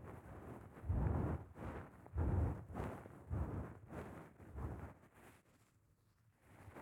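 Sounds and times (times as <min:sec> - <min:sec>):
fluffy glove massage: 0:00.9 - 0:05.4.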